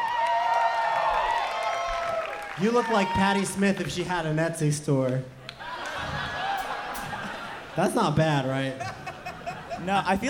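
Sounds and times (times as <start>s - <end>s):
audience clapping and cheering: 0.0s - 4.4s, 5.0s - 6.7s
speech: 2.6s - 5.4s, 7.8s - 9.0s, 9.8s - 10.2s
laughter: 5.5s - 10.2s.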